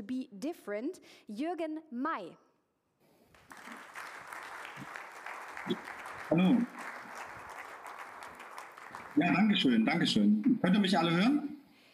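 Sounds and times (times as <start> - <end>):
speech: 0.1 - 2.5, 5.6 - 6.9, 9.2 - 11.5
audience applause: 3.4 - 9.8.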